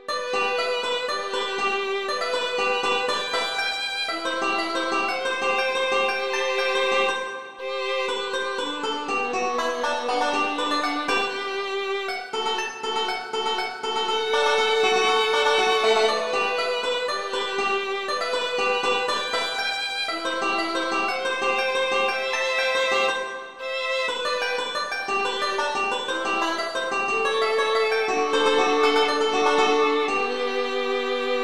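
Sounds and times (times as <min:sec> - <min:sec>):
banjo: 0:00.0 - 0:31.4
violin: 0:00.0 - 0:31.4.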